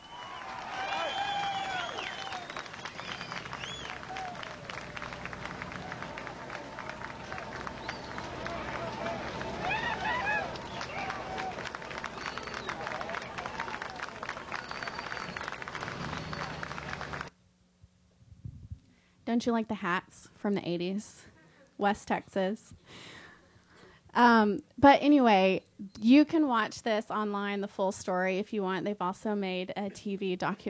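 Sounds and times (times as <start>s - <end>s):
crowd cheering with whoops and shouts: 0.0s - 17.3s
speech: 19.3s - 21.2s, 21.8s - 22.8s, 24.2s - 30.6s.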